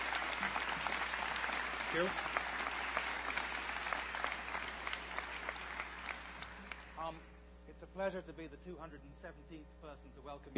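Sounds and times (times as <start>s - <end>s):
Princeton freshman assembly audience applauding a professor: 0.0s - 7.1s
speech: 1.9s - 2.4s, 7.9s - 10.5s.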